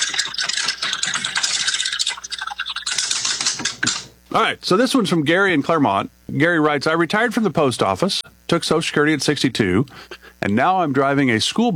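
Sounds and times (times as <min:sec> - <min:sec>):
spinning prize wheel clicking: 0:00.0 - 0:04.1
speech: 0:04.4 - 0:11.7.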